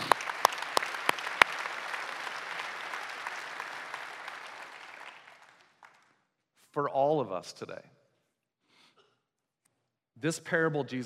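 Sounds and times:
audience clapping: 0:00.0 - 0:06.2
speech: 0:06.8 - 0:07.9, 0:10.2 - 0:11.0.

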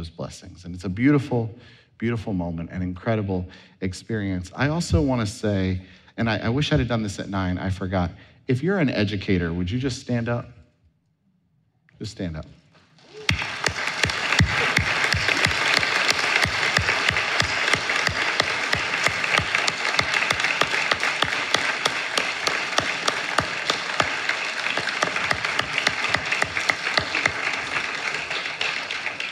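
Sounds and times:
speech: 0:00.0 - 0:10.6, 0:12.0 - 0:12.6
applause: 0:13.0 - 0:29.3.

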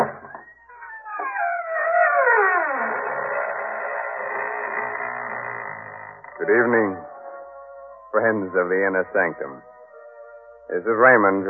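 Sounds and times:
squeaking door opening: 0:00.0 - 0:06.6
speech: 0:06.4 - 0:07.1, 0:08.1 - 0:09.7, 0:10.7 - 0:11.4.

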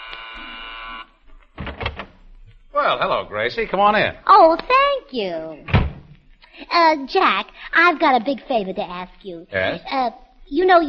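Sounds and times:
door buzzer: 0:00.0 - 0:01.9
speech: 0:02.8 - 0:05.8, 0:06.6 - 0:10.8.

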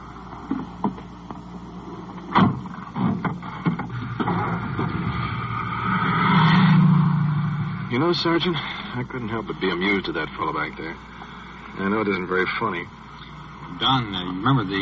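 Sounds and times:
car engine idling and pulling away: 0:00.0 - 0:14.8
knocks and thumps: 0:02.3 - 0:05.3
speech: 0:08.0 - 0:11.1, 0:11.8 - 0:13.0, 0:13.7 - 0:14.8.

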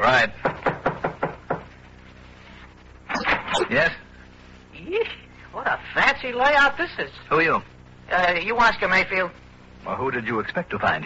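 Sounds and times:
speech: 0:00.0 - 0:00.5, 0:05.7 - 0:11.0
quiet room hiss: 0:00.0 - 0:11.0
firm knocking on a door: 0:00.3 - 0:01.7.

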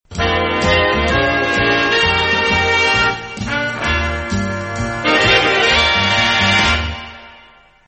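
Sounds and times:
short instrumental intro: 0:00.1 - 0:07.8.

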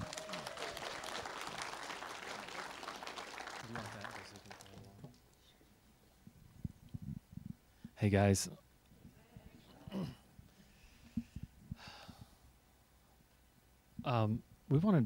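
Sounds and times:
audience applause: 0:00.0 - 0:05.2
speech: 0:08.0 - 0:08.6, 0:14.2 - 0:15.0.

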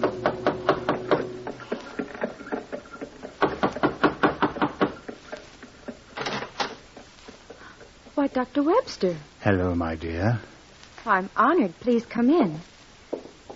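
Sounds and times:
knocking on a door: 0:00.0 - 0:01.4, 0:03.4 - 0:05.0
speech: 0:08.3 - 0:12.7.

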